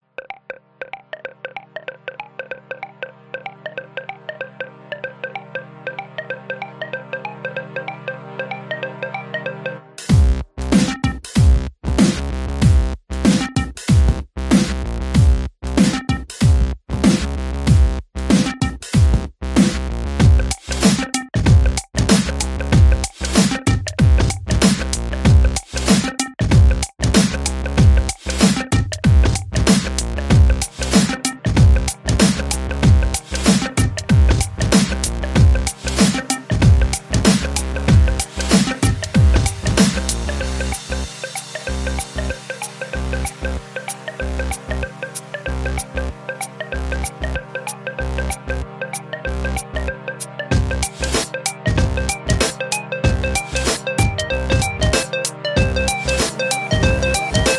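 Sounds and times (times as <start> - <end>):
glitch hop moombahton music: 10.0 - 57.5.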